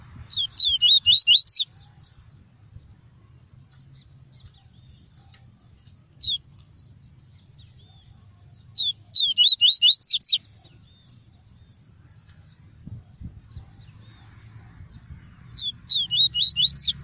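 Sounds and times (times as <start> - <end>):
Double-collared seedeater song: 0.3 - 2.0, 6.2 - 6.4, 7.8 - 12.5, 15.6 - 17.0.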